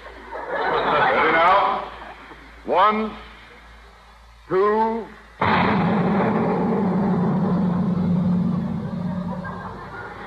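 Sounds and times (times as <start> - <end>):
laughter: 0.0 - 2.6, 8.5 - 10.2
speech: 2.8 - 3.3, 4.5 - 5.8
giant firecracker exploding: 5.4 - 10.2.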